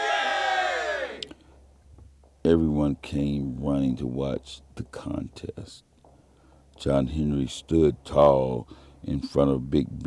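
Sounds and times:
group of men cheering: 0:00.0 - 0:01.3
speech: 0:02.5 - 0:05.9, 0:06.8 - 0:10.0.

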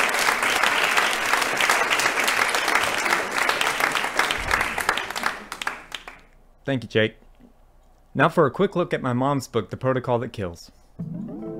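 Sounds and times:
crowd applause: 0:00.0 - 0:06.3
speech: 0:06.7 - 0:07.2, 0:08.2 - 0:11.2.

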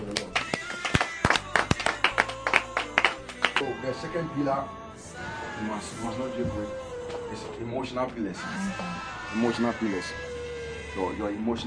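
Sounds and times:
audience clapping: 0:00.0 - 0:03.7
speech: 0:04.0 - 0:04.8, 0:05.6 - 0:10.3, 0:11.0 - 0:11.6.

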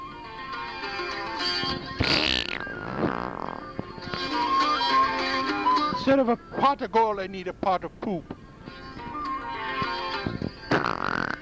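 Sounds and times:
steady tonal backdrop resembling music: 0:00.0 - 0:10.7
loud raspy fart sound effect: 0:02.0 - 0:03.7, 0:10.7 - 0:11.4
speech: 0:06.1 - 0:08.4.

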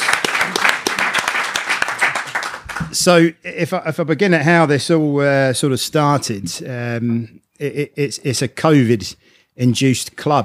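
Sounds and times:
audience applause: 0:00.0 - 0:03.1
speech: 0:03.0 - 0:10.4.

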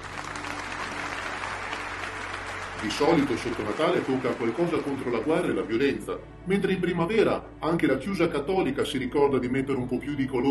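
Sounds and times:
crowd applauding: 0:00.0 - 0:06.1
speech: 0:02.8 - 0:10.5.

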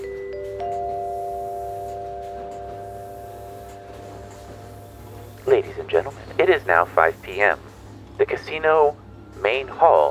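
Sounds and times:
chime: 0:00.0 - 0:04.7
speech: 0:05.6 - 0:10.1.

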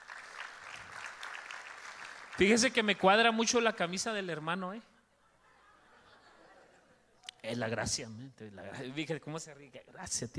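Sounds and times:
audience applause: 0:00.0 - 0:02.9
speech: 0:02.4 - 0:04.9, 0:07.5 - 0:10.3
laughter: 0:05.0 - 0:07.2.

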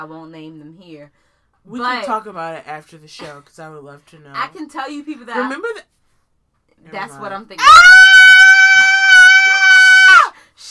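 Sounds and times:
speech: 0:00.0 - 0:06.0, 0:06.8 - 0:08.5
loud piercing human scream: 0:07.6 - 0:10.4.

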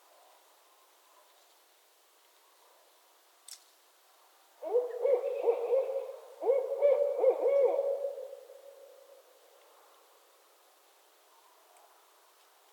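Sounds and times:
barred owls caterwauling duet of hoots and wails: 0:04.6 - 0:08.9.

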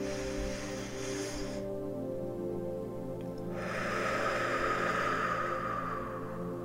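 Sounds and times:
deep breath during a relaxation exercise: 0:00.0 - 0:01.9, 0:03.5 - 0:06.6
sustained musical drone: 0:00.0 - 0:06.6.

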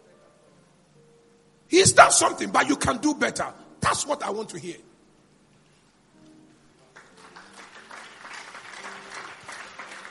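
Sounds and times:
speech: 0:01.8 - 0:04.9
audience clapping: 0:06.8 - 0:10.0.

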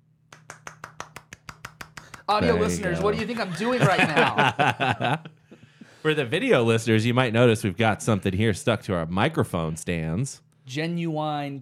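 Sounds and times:
one-handed clap: 0:00.3 - 0:03.5
speech: 0:02.3 - 0:05.4, 0:06.0 - 0:11.6
laughter: 0:02.4 - 0:05.6.

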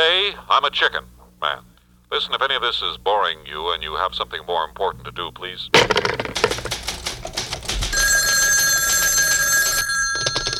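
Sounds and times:
speech: 0:00.3 - 0:06.6
old-fashioned telephone bell ringing: 0:07.9 - 0:10.5.

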